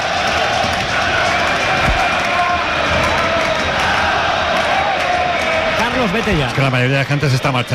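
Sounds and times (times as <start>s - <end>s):
football fans chanting at their coach in the north stand at Mestalla stadium: 0.0s - 5.8s
speech: 6.0s - 7.7s.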